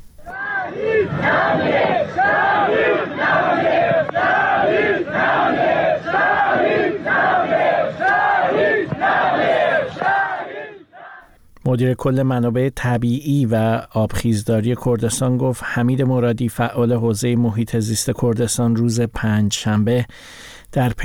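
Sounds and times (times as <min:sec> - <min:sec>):
funeral crowd chanting slogans: 0:00.2 - 0:11.3
speech: 0:11.7 - 0:21.0.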